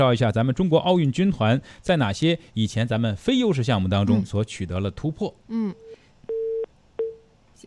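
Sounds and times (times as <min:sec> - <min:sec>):
speech: 0:00.0 - 0:05.9
telephone line beeps as a call to a reporter connects: 0:05.8 - 0:07.2.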